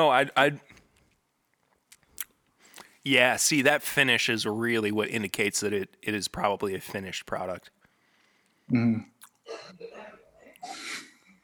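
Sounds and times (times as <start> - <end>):
speech: 0.0 - 0.8, 3.0 - 7.8, 8.7 - 11.0
person coughing: 8.7 - 11.2.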